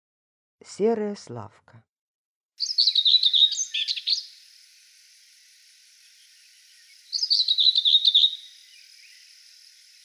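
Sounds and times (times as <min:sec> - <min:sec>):
common whitethroat song with short scratchy jerky warbled phrases: 0:02.6 - 0:04.5, 0:06.0 - 0:10.0.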